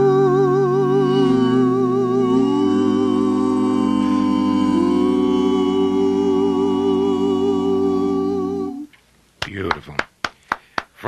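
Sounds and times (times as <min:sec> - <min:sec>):
sustained sung note: 0:00.0 - 0:08.8
applause from down the hall: 0:09.4 - 0:11.0.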